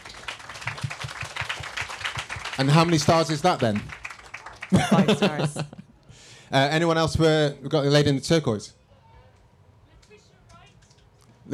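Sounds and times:
crowd applauding: 0:00.0 - 0:05.5
speech: 0:02.6 - 0:04.0, 0:04.7 - 0:05.8, 0:06.5 - 0:08.8
laughter: 0:04.7 - 0:06.0.

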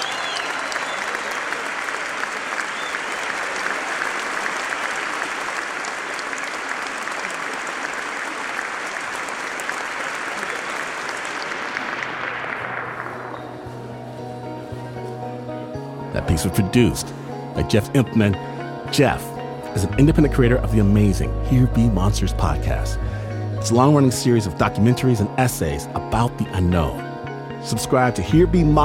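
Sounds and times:
audience applause: 0:00.0 - 0:13.7
speech: 0:16.3 - 0:27.0, 0:27.6 - 0:28.8.

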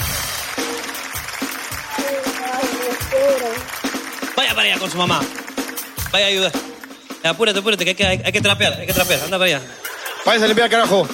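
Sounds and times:
audience applause: 0:00.0 - 0:07.1
speech: 0:04.6 - 0:05.4, 0:06.1 - 0:11.1
laughter: 0:09.0 - 0:11.1.

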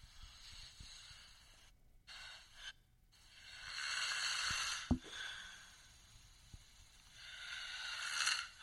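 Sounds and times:
man snoring: 0:02.4 - 0:05.9, 0:07.0 - 0:08.5.

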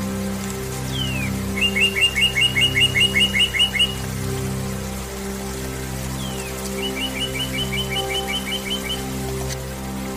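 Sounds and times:
meditation music with low sustained tones: 0:00.0 - 0:10.1
bird singing: 0:00.9 - 0:04.1, 0:06.1 - 0:09.3.

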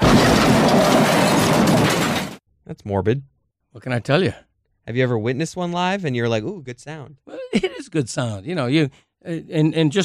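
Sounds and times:
car crash sound effect: 0:00.0 - 0:02.4
speech: 0:02.8 - 0:10.0
laughter: 0:07.3 - 0:08.4.

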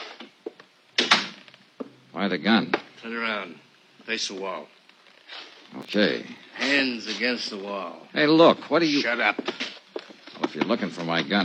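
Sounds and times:
door thudding shut and latching: 0:01.0 - 0:01.4
speech: 0:02.2 - 0:09.7, 0:10.6 - 0:11.4.

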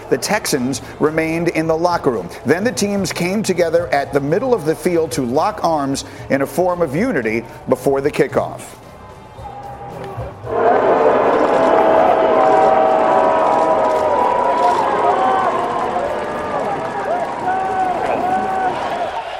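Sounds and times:
speech: 0:00.1 - 0:08.8
stadium crowd booing: 0:09.4 - 0:19.3.

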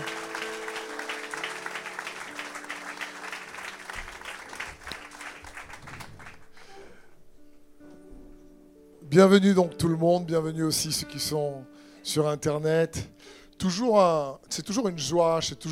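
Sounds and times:
congregation applauding the Lord during a French-language church service: 0:00.0 - 0:06.7
speech: 0:09.1 - 0:15.6.

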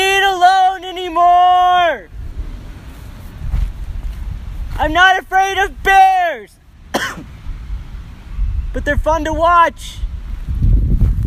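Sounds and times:
wind blowing through trees: 0:00.0 - 0:11.2
speech: 0:08.8 - 0:10.1.

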